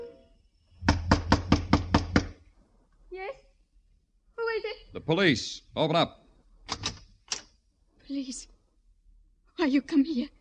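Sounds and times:
knock on a door: 0.8s - 2.4s
speech: 5.0s - 6.9s, 8.1s - 8.5s, 9.6s - 10.3s.

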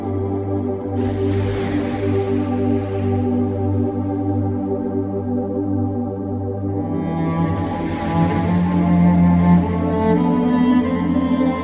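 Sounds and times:
piano chords: 0.0s - 11.6s
shimmering wash: 0.8s - 11.6s.

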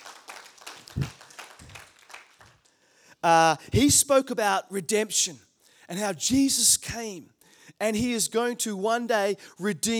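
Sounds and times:
crowd clapping: 0.0s - 2.8s
speech: 1.0s - 1.2s, 3.2s - 9.9s.

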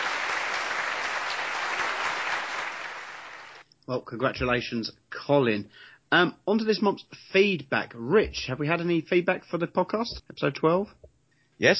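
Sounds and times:
round of applause: 0.0s - 3.6s
speech: 3.9s - 11.0s, 11.6s - 11.7s.

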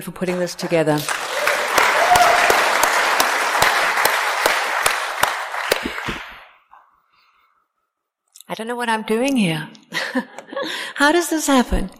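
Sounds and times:
speech: 0.0s - 1.4s, 8.6s - 11.9s
audience applause: 0.3s - 6.5s.

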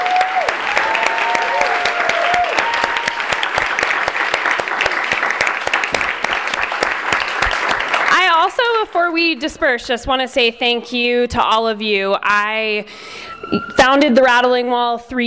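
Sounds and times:
whistles and cheering: 0.0s - 3.8s, 13.1s - 14.4s
audience applause: 0.0s - 8.5s
speech: 9.2s - 15.2s.

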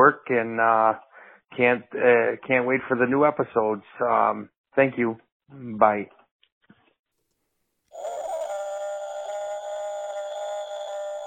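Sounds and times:
speech: 0.0s - 6.2s
person imitating long Bigfoot howl: 7.9s - 11.2s.

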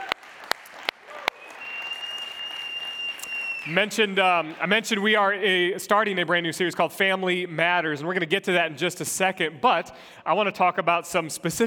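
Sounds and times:
audience applause: 0.0s - 4.6s
thin high whistling tone: 1.6s - 3.7s
speech: 3.6s - 11.6s.

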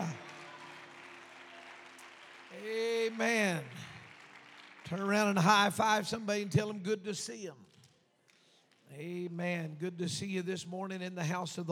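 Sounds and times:
audience clapping: 0.0s - 9.3s
speech: 2.6s - 3.9s, 4.9s - 7.6s, 8.9s - 11.6s.

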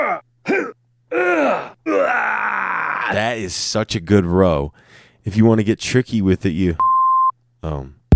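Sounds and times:
man's pained groans: 0.0s - 3.5s
speech: 3.2s - 6.8s, 7.6s - 8.0s.

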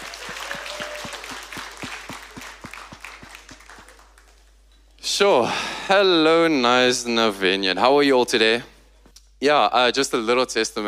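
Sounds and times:
crowd applauding: 0.0s - 4.6s
speech: 5.1s - 8.7s, 9.4s - 10.8s.

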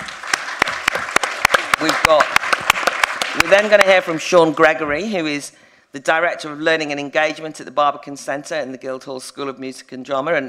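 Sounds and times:
audience applause welcoming a speaker at a Battle of Ideas debate: 0.0s - 4.2s
speech: 3.6s - 10.4s.

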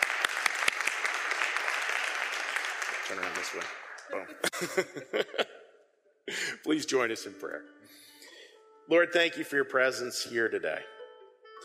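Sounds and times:
audience applause: 0.0s - 4.5s
speech: 3.1s - 5.6s, 6.3s - 8.1s, 8.9s - 11.0s
laughter: 3.2s - 6.7s.

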